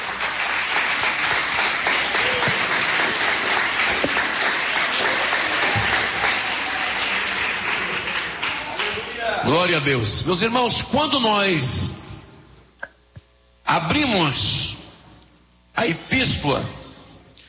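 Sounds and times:
audience applause: 0:00.0 - 0:09.5
speech: 0:09.6 - 0:11.9, 0:13.8 - 0:14.7, 0:15.8 - 0:16.8.

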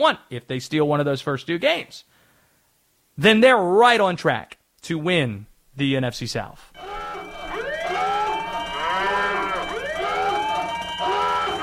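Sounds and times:
speech: 0:00.0 - 0:02.1, 0:03.2 - 0:06.9
wailing siren: 0:06.8 - 0:11.6.

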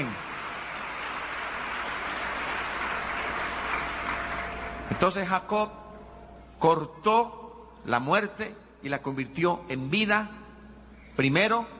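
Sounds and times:
audience applause: 0:00.0 - 0:05.0
speech: 0:04.9 - 0:05.8, 0:06.6 - 0:10.4, 0:11.2 - 0:11.7.

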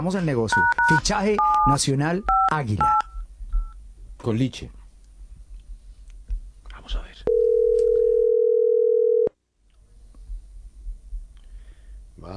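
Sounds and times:
speech: 0:00.0 - 0:03.1, 0:04.2 - 0:04.8
telephone dial tone while dialing a call: 0:07.3 - 0:09.3.

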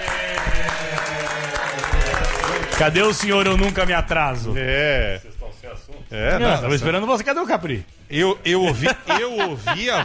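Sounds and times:
audience applauding: 0:00.0 - 0:04.1
speech: 0:02.8 - 0:10.0
laughter: 0:08.5 - 0:10.0.

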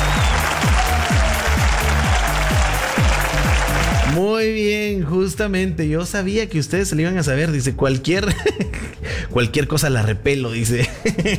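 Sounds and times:
audience applause: 0:00.0 - 0:04.2
speech: 0:04.2 - 0:11.3.

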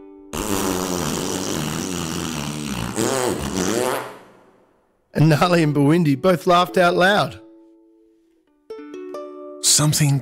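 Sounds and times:
loud fart: 0:00.3 - 0:04.6
speech: 0:05.2 - 0:07.4, 0:09.6 - 0:10.2.

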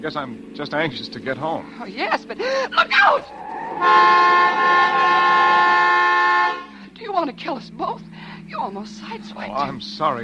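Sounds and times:
speech: 0:00.0 - 0:05.8, 0:07.1 - 0:10.2
car horn honking: 0:03.8 - 0:06.9.

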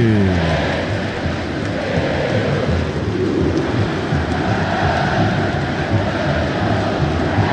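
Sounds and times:
huge football crowd singing the club anthem: 0:00.0 - 0:07.5.

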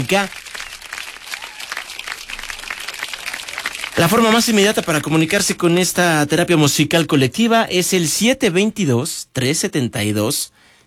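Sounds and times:
speech: 0:00.0 - 0:00.4, 0:04.0 - 0:10.7
crowd applauding: 0:00.0 - 0:06.5.

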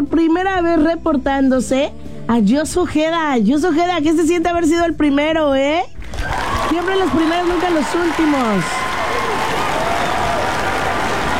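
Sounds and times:
speech: 0:00.0 - 0:08.9
audience clapping for a first-place winner: 0:06.0 - 0:11.3.

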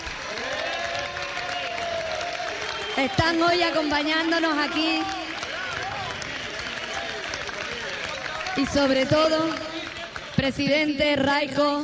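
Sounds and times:
audience applause for the families: 0:00.0 - 0:10.9
speech: 0:03.0 - 0:05.2, 0:08.6 - 0:09.6, 0:10.4 - 0:11.8.

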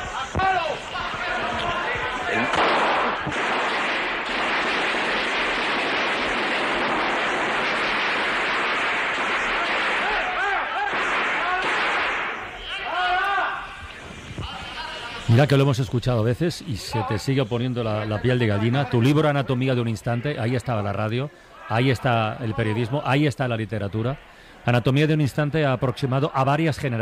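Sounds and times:
voices shouting: 0:00.0 - 0:03.7, 0:06.4 - 0:15.3
gunfire in a parliament chamber on an old broadcast recording: 0:00.0 - 0:12.6
speech: 0:15.4 - 0:27.0.

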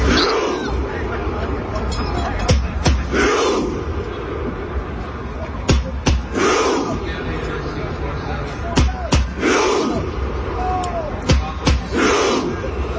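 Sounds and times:
steady din of crowd noise: 0:00.0 - 0:12.9
large crowd of Norwegian fans chanting in unison in Times Square: 0:02.8 - 0:04.0, 0:06.0 - 0:07.1, 0:09.0 - 0:10.4, 0:11.6 - 0:12.7.

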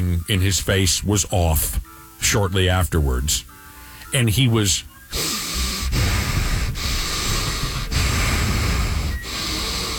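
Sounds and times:
speech: 0:00.2 - 0:03.5, 0:04.1 - 0:05.4
voice imitating heavy labored breathing: 0:05.1 - 0:09.9.

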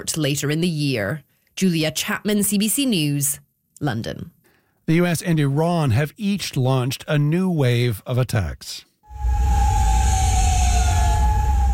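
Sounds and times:
speech: 0:00.0 - 0:09.4
sirens ringing overnight in Kuwait City: 0:09.1 - 0:11.7.

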